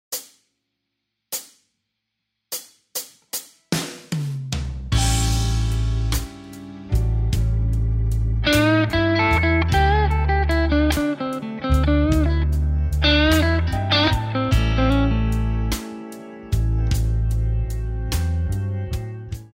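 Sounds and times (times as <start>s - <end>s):
guitar lick: 5.0s - 19.0s.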